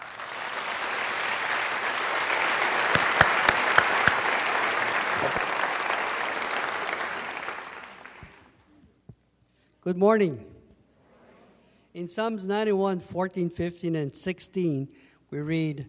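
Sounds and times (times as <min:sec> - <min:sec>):
congregation applause at a church service: 0:00.0 - 0:08.5
speech: 0:09.9 - 0:10.5, 0:12.0 - 0:15.8.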